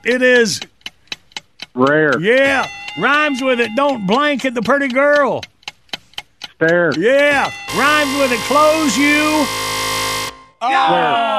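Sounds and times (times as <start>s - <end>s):
speech: 0.0s - 0.7s, 1.8s - 5.5s, 6.6s - 9.6s, 10.6s - 11.3s
excited voices talking: 1.9s - 5.4s, 6.8s - 9.5s, 10.6s - 11.3s
game show buzzer: 7.7s - 10.7s.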